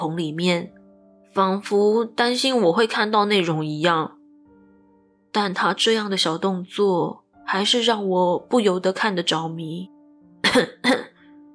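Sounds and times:
speech: 0.0s - 4.2s, 5.3s - 9.9s, 10.5s - 11.1s
person coughing: 10.4s - 11.1s.

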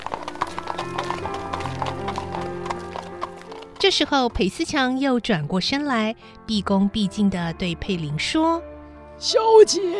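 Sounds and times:
horse-drawn carriage hooves clip-clopping: 0.0s - 4.8s
speech: 3.8s - 9.9s
soft music: 4.2s - 9.9s.

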